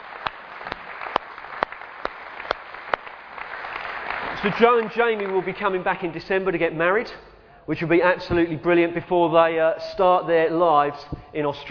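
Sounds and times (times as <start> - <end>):
audience applauding: 0.0 - 6.0
speech: 4.4 - 11.6.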